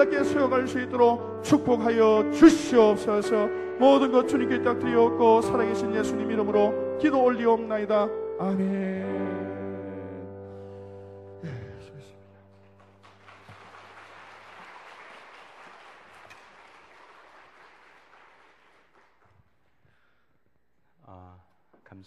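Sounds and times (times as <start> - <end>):
speech: 0.0 - 9.4
audience applauding: 12.5 - 19.9.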